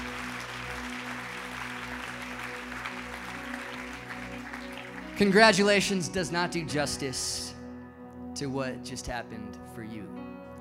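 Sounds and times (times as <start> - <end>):
audience applause at a welcome event congratulating new members: 0.0 - 6.1
speech: 5.2 - 7.5, 8.4 - 10.3.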